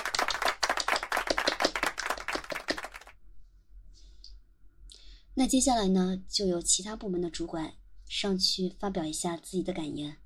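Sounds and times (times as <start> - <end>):
group applause: 0.0 - 3.1
speech: 5.4 - 10.2.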